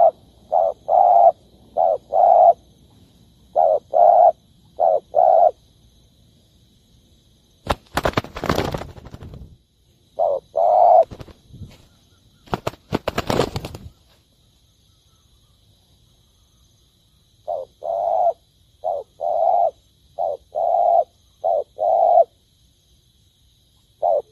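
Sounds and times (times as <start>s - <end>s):
spotted dove cooing: 0.0s - 2.6s, 3.5s - 5.6s, 10.2s - 13.9s, 17.5s - 22.3s, 24.0s - 24.3s.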